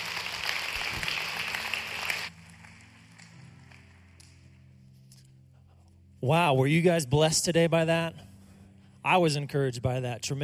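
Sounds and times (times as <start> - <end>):
church congregation applauding to welcome new members: 0.0 - 4.6
speech: 6.2 - 8.3, 9.0 - 10.4.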